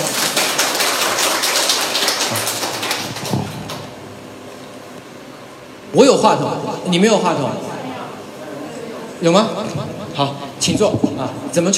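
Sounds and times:
audience applause: 0:00.0 - 0:03.9
speech: 0:06.0 - 0:07.7, 0:09.2 - 0:11.7.

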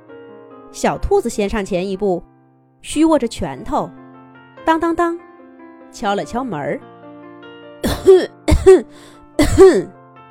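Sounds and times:
speech: 0:00.7 - 0:04.0, 0:04.6 - 0:05.2, 0:05.9 - 0:06.9, 0:08.0 - 0:10.0
deep prolonged cough: 0:07.8 - 0:09.9.

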